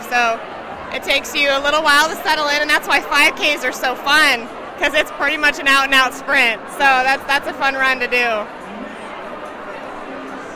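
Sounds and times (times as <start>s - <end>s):
crowd of runners chattering before a race: 0.0s - 10.5s
speech: 0.1s - 8.6s.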